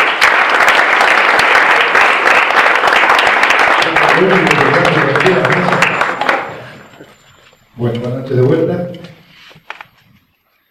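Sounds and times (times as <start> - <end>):
audience applause: 0.0 - 7.0
speech: 4.2 - 4.7, 7.8 - 9.1.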